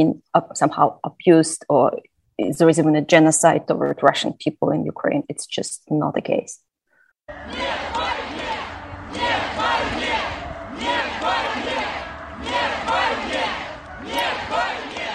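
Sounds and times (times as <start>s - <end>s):
speech: 0.0s - 6.6s, 7.3s - 8.0s
anti-war protesters chanting no to war in a St. Petersburg street: 7.3s - 15.1s.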